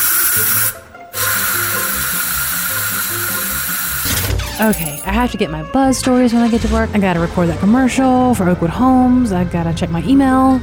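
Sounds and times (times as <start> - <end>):
dry shampoo aerosol spray: 0.0 - 4.1
speech: 0.4 - 0.8, 4.6 - 10.6.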